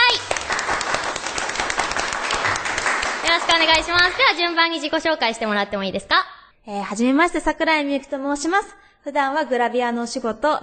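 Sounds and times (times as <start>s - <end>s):
audience applause welcoming guests: 0.0s - 4.6s
speech: 3.4s - 10.6s.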